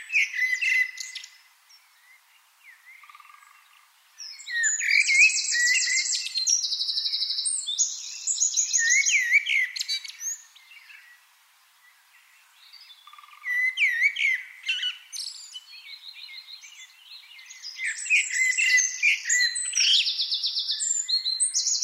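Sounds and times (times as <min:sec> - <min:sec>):
Eurasian wren song trills: 0:00.0 - 0:11.2, 0:11.8 - 0:21.8.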